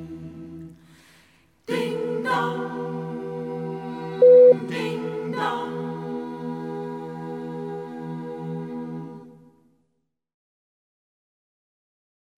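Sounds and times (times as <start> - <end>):
a cappella singing of a carol: 0.0 - 9.8.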